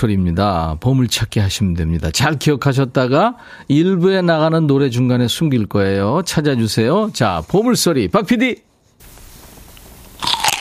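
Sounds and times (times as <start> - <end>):
speech: 0.0 - 8.7
faint rustle: 6.3 - 10.1
teeth biting into an apple: 10.2 - 10.5.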